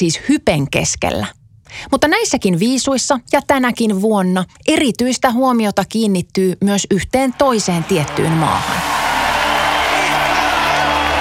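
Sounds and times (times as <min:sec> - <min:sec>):
speech: 0:00.0 - 0:09.0
crowd applause: 0:07.3 - 0:11.1.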